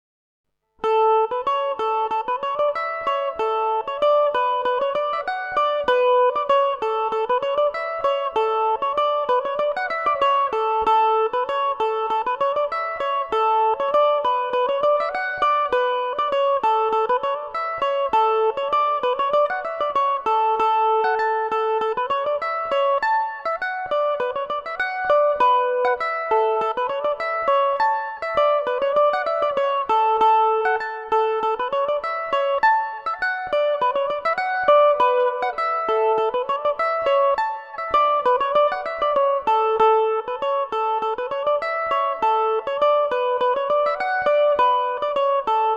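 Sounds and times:
Irish mandolin in A major: 0.8s - 45.7s.

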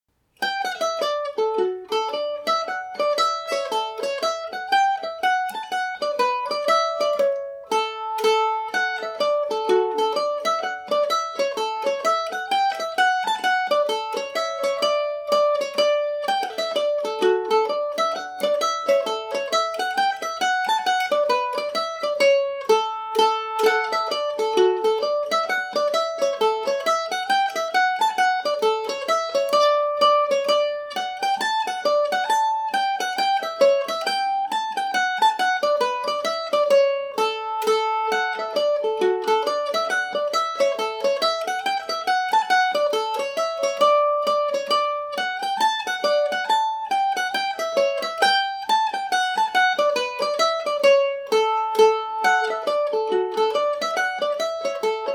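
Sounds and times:
Irish mandolin playing in D major: 0.1s - 55.1s.

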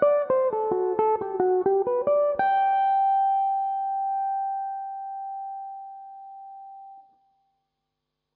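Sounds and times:
mandolin playing in G major: 0.0s - 6.6s.

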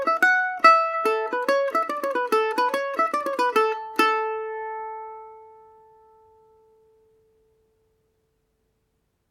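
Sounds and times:
Irish mandolin playing Paris swing in A major: 0.0s - 7.0s.

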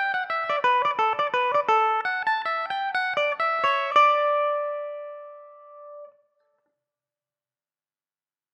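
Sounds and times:
Irish mandolin playing in D major: 0.0s - 6.2s.

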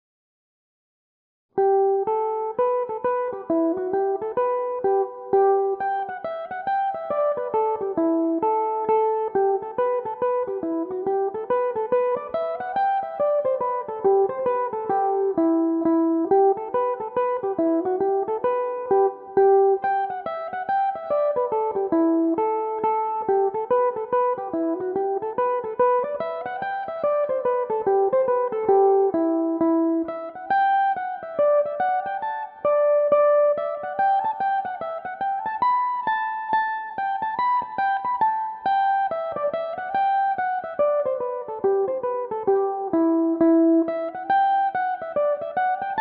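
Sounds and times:
Irish mandolin tunes in E minor: 1.6s - 46.0s.

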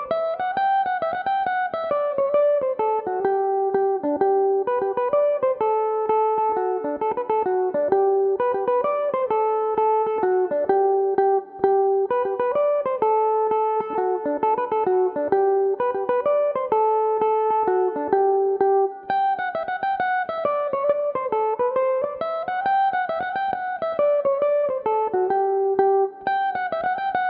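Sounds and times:
Irish electric mandolin playing a slide in G major: 0.0s - 27.2s.

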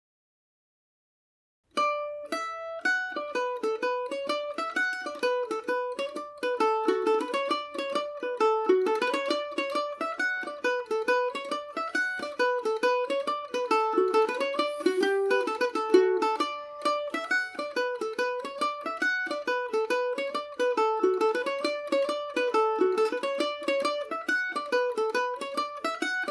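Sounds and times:
mandolin tune in D major: 1.7s - 26.2s.

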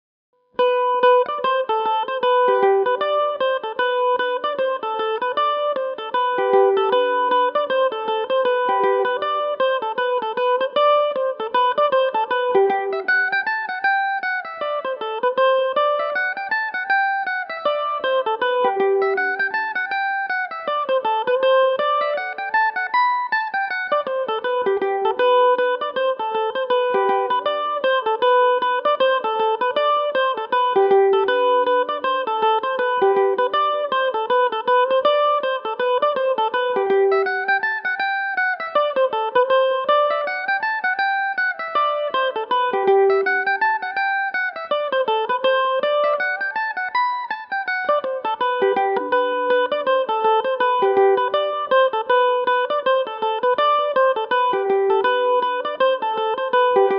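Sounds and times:
Irish mandolin in G major: 0.6s - 56.9s.

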